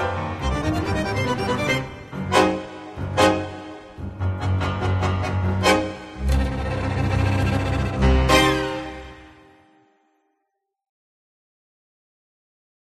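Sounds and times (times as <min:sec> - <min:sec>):
tango music: 0:00.0 - 0:09.5.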